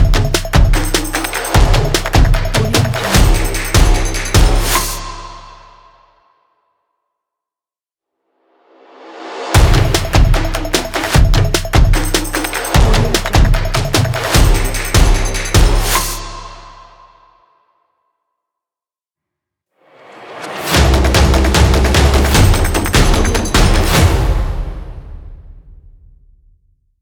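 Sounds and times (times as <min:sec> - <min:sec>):
action claps: 0:00.0 - 0:05.0, 0:09.6 - 0:16.2, 0:21.0 - 0:24.0
action drums: 0:00.0 - 0:05.0, 0:09.0 - 0:16.2, 0:20.7 - 0:25.6.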